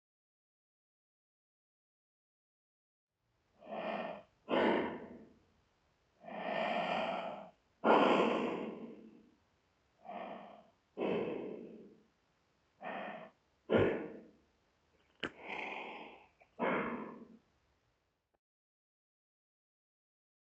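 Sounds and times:
breathing through gas mask: 3.6s - 5.3s, 6.2s - 9.2s, 10.0s - 12.0s, 12.8s - 14.4s, 15.2s - 17.4s.

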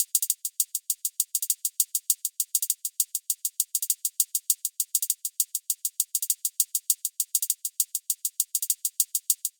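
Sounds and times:
hi-hat loop at 100 bpm: 0.0s - 9.5s.

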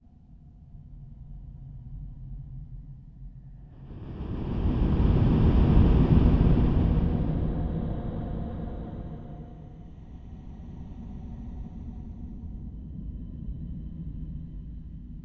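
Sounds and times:
horror whoosh: 3.8s - 10.8s.

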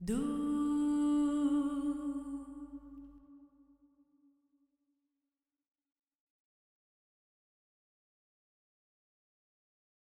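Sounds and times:
girl singing: 0.0s - 3.2s.

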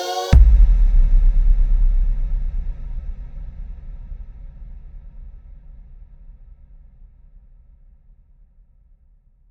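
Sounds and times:
tension build-up: 0.3s - 5.4s.

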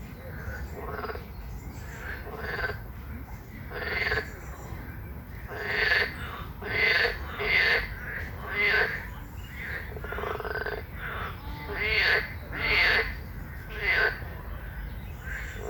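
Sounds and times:
frog croaking in rasping pulsed bursts: 0.8s - 1.2s, 2.0s - 2.8s, 3.7s - 4.3s, 5.5s - 9.0s, 9.6s - 14.3s.

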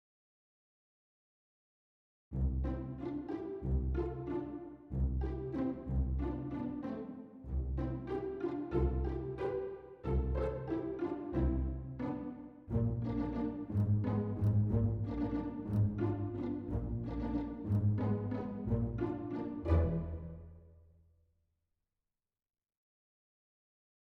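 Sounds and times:
mystical film score soundscape: 2.4s - 20.6s.

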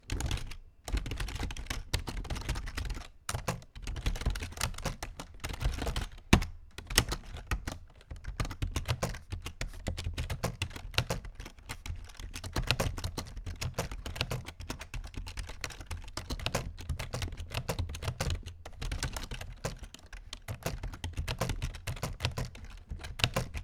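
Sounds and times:
typing: 0.1s - 23.6s.

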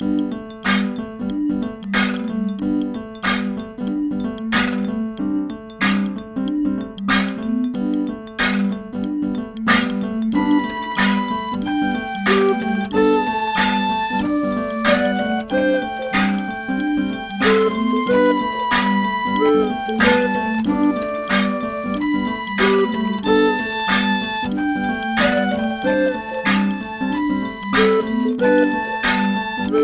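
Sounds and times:
cute pop music: 0.0s - 29.8s.

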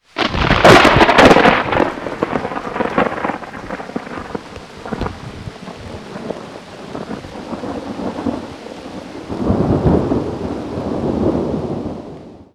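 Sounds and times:
large thunder crash: 0.2s - 12.4s.

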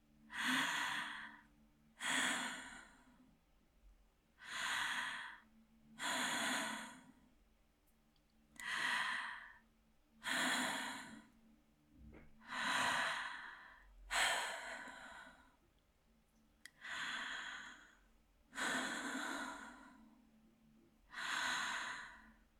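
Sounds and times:
out of breath woman breathing slowly: 0.3s - 3.2s, 4.4s - 7.2s, 8.6s - 9.6s, 10.2s - 11.4s, 12.4s - 15.6s, 16.8s - 20.2s, 21.1s - 22.5s.

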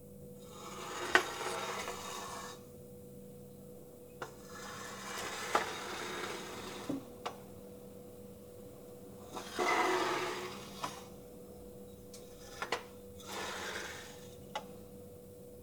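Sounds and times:
chair moving slowly on tiles: 0.4s - 2.6s, 4.2s - 7.5s, 9.2s - 11.2s, 12.1s - 14.8s.

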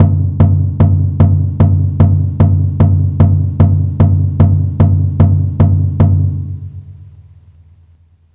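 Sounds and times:
drum beat: 0.0s - 6.6s.

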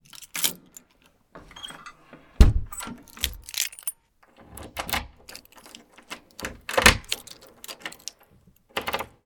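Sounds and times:
keys and handle rattling: 0.0s - 9.1s
metal and wood latch door closing: 1.4s - 3.8s, 4.4s - 8.1s.

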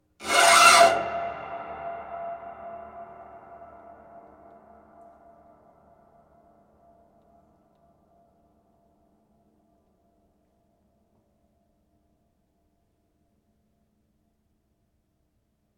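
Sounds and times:
scrapes: 0.2s - 3.6s.

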